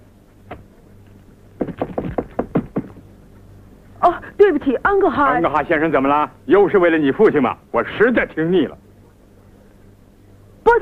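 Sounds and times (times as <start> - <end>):
knocking on a door: 1.6 - 3.1
speech: 4.6 - 8.8.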